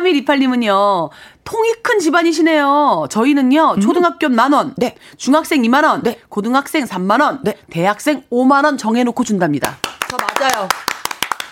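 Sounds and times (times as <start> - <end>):
speech: 0.1 - 10.9
clapping applause: 9.6 - 11.4.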